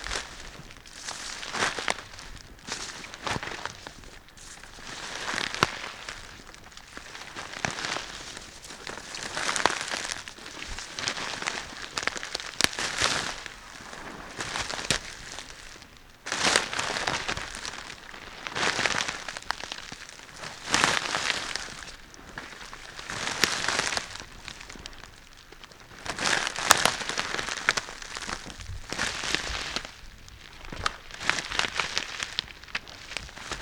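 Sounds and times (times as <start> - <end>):
walking through dense forest: 0.0 - 33.6.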